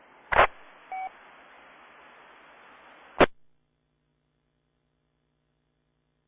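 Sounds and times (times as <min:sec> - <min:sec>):
radio static: 0:00.0 - 0:03.4.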